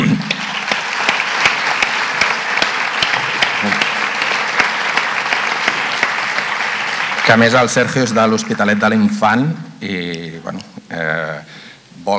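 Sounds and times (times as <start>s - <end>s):
audience applause: 0.0s - 9.0s
speech: 7.3s - 12.1s.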